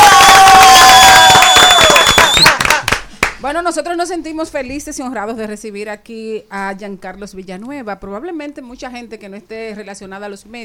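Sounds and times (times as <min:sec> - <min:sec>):
studio audience applause and cheering: 0:00.0 - 0:03.4
speech: 0:03.6 - 0:10.6.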